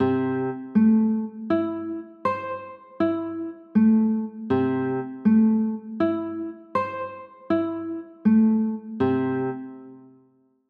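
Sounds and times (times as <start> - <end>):
A minor chords: 0.0 - 10.1.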